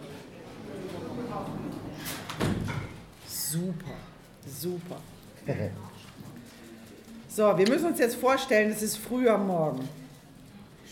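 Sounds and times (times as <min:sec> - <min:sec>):
door being closed: 0:02.0 - 0:03.1
speech: 0:03.5 - 0:05.9, 0:07.4 - 0:10.0.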